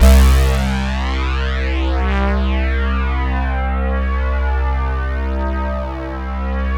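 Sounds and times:
fat synth note on C2: 0:00.0 - 0:06.7.

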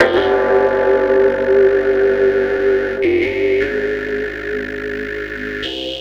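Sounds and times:
dark bell tolling: 0:00.0 - 0:05.0.

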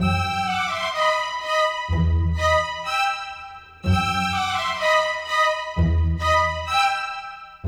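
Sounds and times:
strings: 0:00.0 - 0:07.6.

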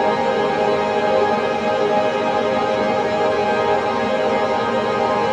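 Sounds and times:
synth pad: 0:00.1 - 0:05.1.

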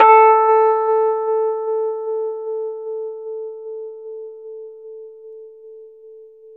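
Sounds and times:
Rhodes 73 electric piano playing slowly in A: 0:00.0 - 0:04.5.

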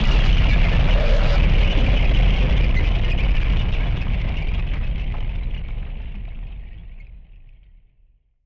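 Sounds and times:
noise bomb rumbler: 0:00.0 - 0:06.6.

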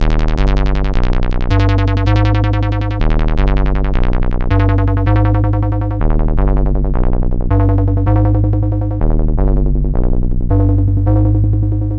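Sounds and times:
bass sound: 0:00.0 - 0:11.9.

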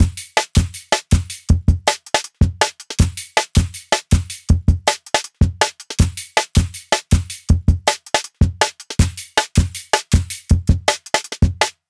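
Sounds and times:
160 bpm live jungle drum break: 0:00.0 - 0:11.7.

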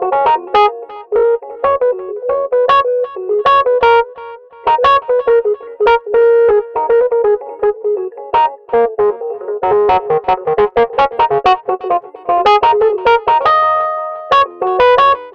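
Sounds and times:
Rhodes electric piano solo in cinematic funk: 0:00.0 - 0:15.3.

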